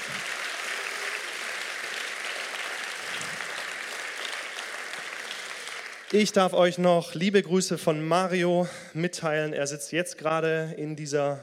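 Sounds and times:
audience applause: 0:00.0 - 0:06.6
speech: 0:06.1 - 0:11.4.

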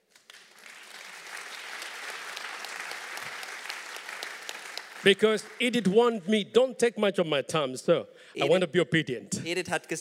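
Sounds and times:
audience applause: 0:00.2 - 0:06.0
speech: 0:05.0 - 0:10.0.

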